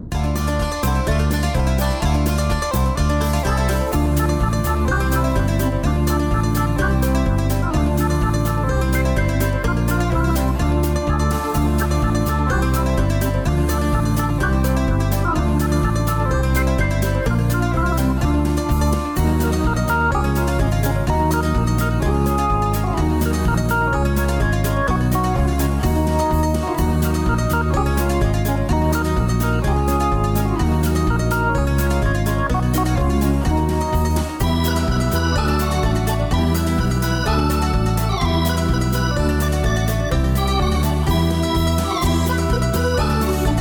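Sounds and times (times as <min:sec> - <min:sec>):
banjo: 0:00.1 - 0:43.5
square dance music: 0:00.1 - 0:43.5.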